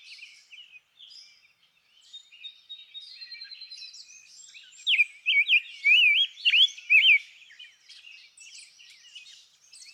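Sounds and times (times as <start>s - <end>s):
Rose-breasted Grosbeak: 4.9s - 7.2s.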